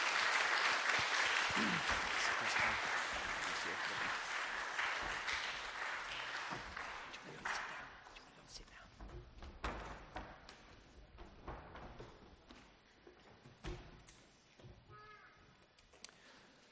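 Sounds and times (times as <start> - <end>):
audience applause for volunteers: 0.0 - 7.9.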